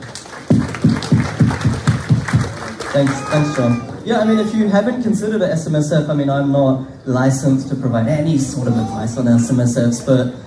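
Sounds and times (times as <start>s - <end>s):
audience applause: 0.0s - 4.5s
speech: 3.0s - 10.4s.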